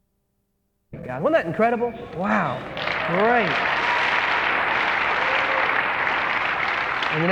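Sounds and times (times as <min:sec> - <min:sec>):
speech: 0:01.1 - 0:03.8
church audience applause after worship music: 0:02.6 - 0:07.2.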